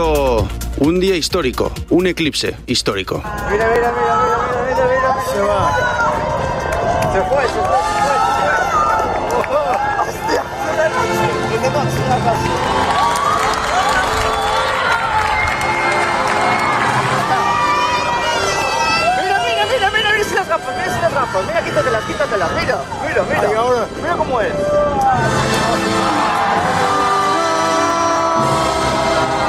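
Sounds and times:
speech: 0.8s - 4.2s, 7.1s - 8.1s, 21.2s - 27.0s
crowd shouting and cheering during eclipse: 3.1s - 29.4s
scattered clapping: 6.6s - 10.1s, 12.2s - 17.3s.

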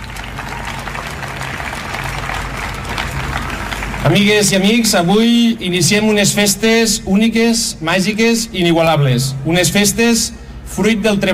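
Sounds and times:
audience applause: 0.0s - 4.9s
speech: 4.0s - 11.3s.

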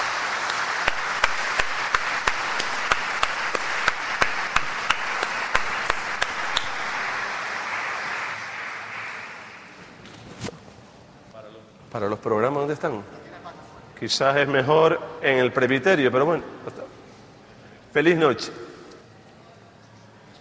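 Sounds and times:
audience applause: 0.0s - 9.9s
rhythmic clapping: 0.0s - 9.9s
speech: 12.0s - 13.2s, 14.0s - 16.8s, 18.0s - 18.6s.

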